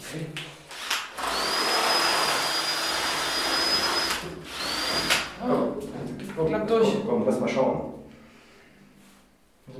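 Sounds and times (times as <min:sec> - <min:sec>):
speech: 0:00.1 - 0:00.4, 0:06.4 - 0:08.0
power drill drilling a hole: 0:00.7 - 0:05.4.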